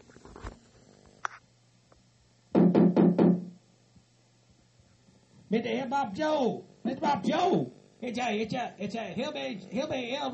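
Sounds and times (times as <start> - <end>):
knocking on a door: 2.5 - 3.6
speech: 5.5 - 10.3.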